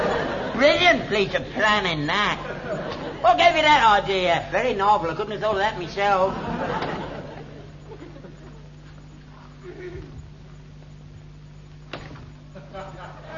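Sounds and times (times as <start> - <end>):
laughter: 0.0 - 1.3, 2.1 - 3.5, 6.0 - 9.0, 9.6 - 10.2, 12.5 - 13.3
steady low hum: 0.0 - 13.3
speech: 0.6 - 6.8
door creaking open: 11.9 - 12.4.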